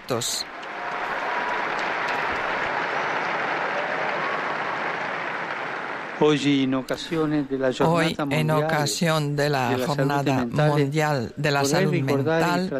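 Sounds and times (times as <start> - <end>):
crowd applause: 0.0 - 7.5
speech: 0.1 - 0.6, 6.2 - 12.7.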